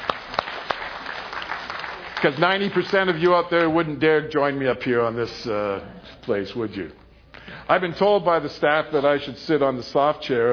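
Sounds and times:
audience applauding: 0.0 - 3.5
speech: 2.2 - 7.0, 7.7 - 10.5.

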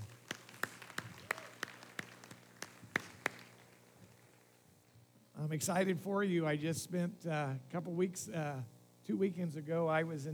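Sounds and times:
sparse audience claps: 0.0 - 4.4
faint hum: 0.0 - 10.3
speech: 5.4 - 10.3.

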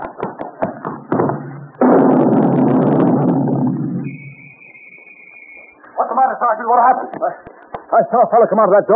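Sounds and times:
quick thumps of a running man: 0.0 - 3.8
explosion of a running man in a radio drama: 1.2 - 4.5
steady high tone: 3.9 - 5.9
speech: 6.5 - 8.9.

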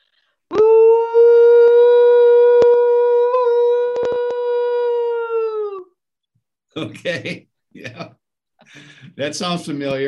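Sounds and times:
person making a loud siren-type whooping call: 0.5 - 5.9
speech: 6.8 - 10.0.

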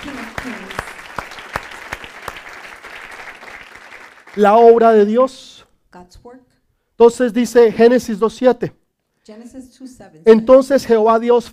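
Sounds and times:
loud audience applause: 0.0 - 5.0
speech: 4.4 - 6.2, 7.0 - 11.5.

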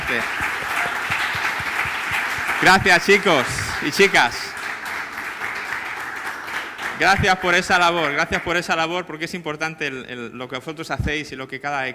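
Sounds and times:
loud applause from a large crowd: 0.0 - 8.7
speech: 0.1 - 0.6, 2.6 - 4.4, 7.0 - 11.9.

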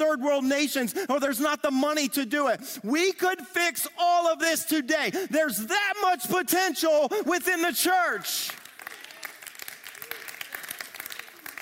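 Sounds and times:
speech: 0.0 - 8.6
crowd clapping: 8.0 - 11.6.

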